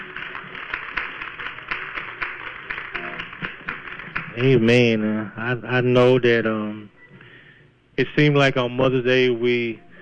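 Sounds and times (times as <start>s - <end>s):
audience hand clapping: 0.0s - 5.0s
speech: 4.4s - 7.0s, 8.0s - 9.8s.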